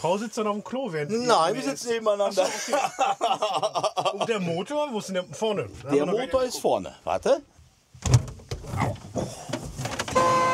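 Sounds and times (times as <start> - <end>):
speech: 0.0 - 8.2
laughter: 2.2 - 4.7
horse transporter vehicle horn: 10.0 - 10.5.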